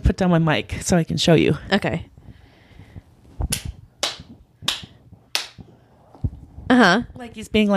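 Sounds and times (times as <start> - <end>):
speech: 0.1 - 2.1, 6.8 - 7.7
hand clapping off the beat: 3.5 - 5.6.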